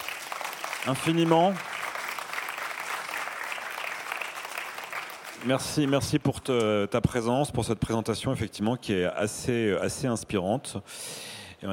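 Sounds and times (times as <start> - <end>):
audience applause: 0.0 - 6.2
speech: 0.8 - 1.7, 5.4 - 11.7.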